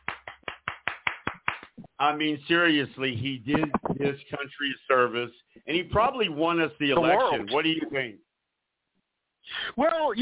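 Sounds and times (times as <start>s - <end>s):
hands clapping: 0.0s - 1.9s, 3.5s - 4.1s
speech: 2.0s - 8.2s, 9.8s - 10.1s.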